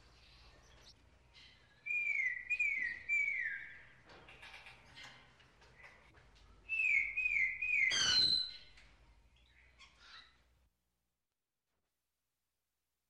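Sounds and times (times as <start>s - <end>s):
bird chirping: 0.0s - 10.5s.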